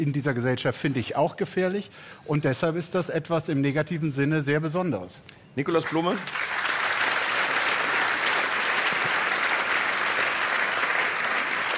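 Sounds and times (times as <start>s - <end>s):
speech: 0.0s - 6.6s
audience applause: 5.8s - 11.7s.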